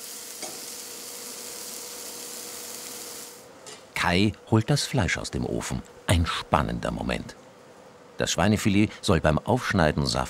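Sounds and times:
herbs being tossed and sizzling in a frying pan: 0.0s - 3.5s
speech: 4.0s - 7.4s, 8.2s - 10.2s.

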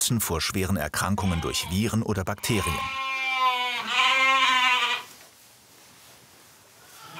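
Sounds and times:
speech: 0.1s - 3.1s
Ouessant sheep bleating: 1.2s - 5.1s, 7.0s - 7.1s.

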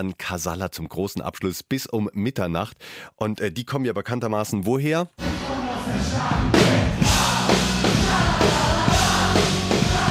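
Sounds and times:
speech: 0.0s - 9.6s
concert crowd singing along: 5.2s - 10.1s.

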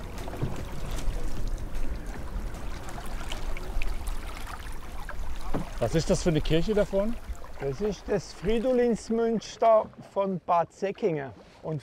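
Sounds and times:
low rumble: 0.0s - 8.2s
water washing around a boat on a river near Bad Säckingen: 0.0s - 11.8s
speech: 5.8s - 11.8s.

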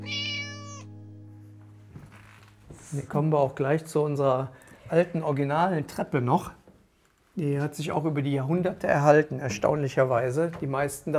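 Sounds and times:
house cat meowing: 0.0s - 0.9s
speech: 2.9s - 6.6s, 7.4s - 11.1s.

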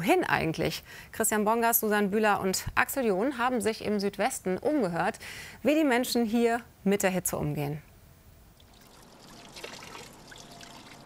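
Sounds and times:
speech: 0.0s - 7.9s
water trickling at a public fountain: 8.6s - 11.0s.

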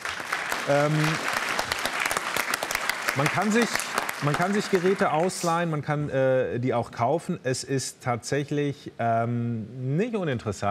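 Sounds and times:
audience applause: 0.0s - 5.6s
speech: 0.7s - 1.3s, 3.2s - 10.6s.

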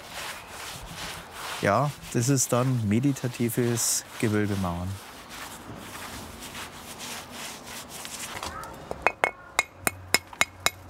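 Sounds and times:
rough scraping and rubbing: 0.0s - 8.7s
speech: 1.6s - 5.1s
hammer knocking on stone: 8.9s - 10.8s.

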